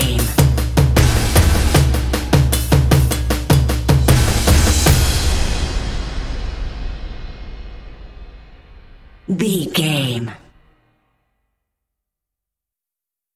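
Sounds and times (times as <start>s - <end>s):
orchestral tension and suspense percussion: 0.0s - 9.3s.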